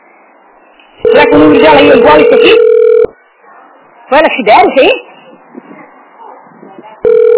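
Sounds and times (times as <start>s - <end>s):
faint murmuring voices: 0.2s - 4.2s, 4.9s - 7.3s
speech: 1.0s - 2.7s, 4.1s - 5.1s
unanswered telephone ringing tone: 1.0s - 3.2s, 7.0s - 7.3s.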